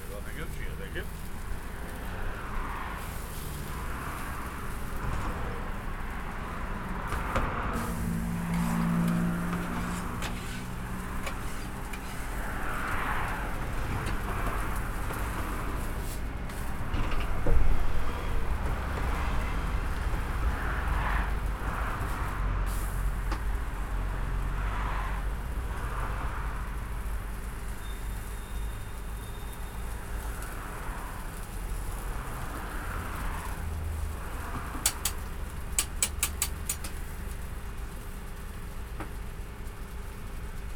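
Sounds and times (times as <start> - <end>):
roadside snack bar ambience in Battersea: 0.0 - 40.7.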